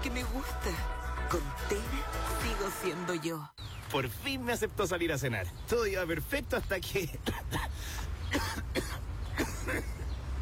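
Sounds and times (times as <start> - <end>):
speech: 0.2 - 8.8
person coughing fit: 7.2 - 10.0.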